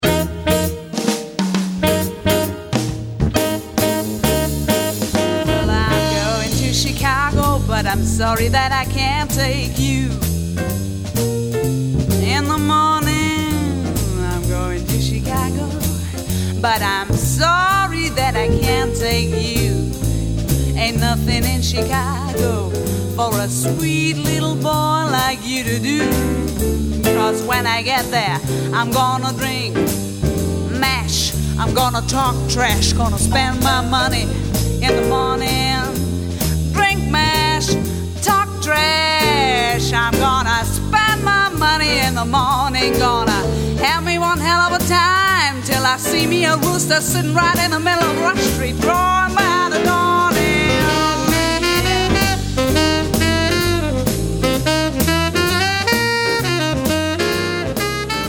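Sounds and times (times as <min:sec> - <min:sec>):
blues music: 0:00.0 - 0:58.2.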